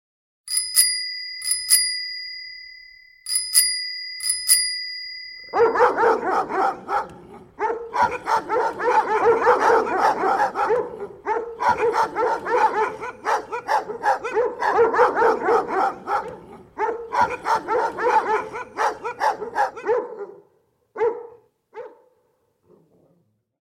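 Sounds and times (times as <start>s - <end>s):
domestic dogs barking: 5.5s - 22.2s.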